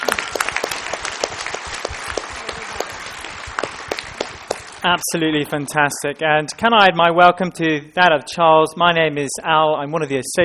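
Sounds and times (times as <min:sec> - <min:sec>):
room full of people clapping: 0:00.0 - 0:05.3
speech: 0:04.8 - 0:10.4.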